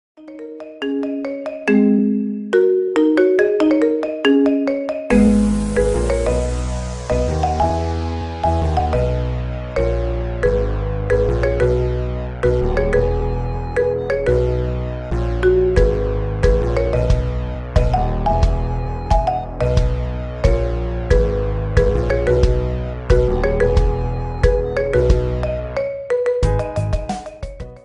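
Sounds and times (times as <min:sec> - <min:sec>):
marimba remix ringtone: 0:00.2 - 0:09.2, 0:09.8 - 0:14.8, 0:15.4 - 0:27.8.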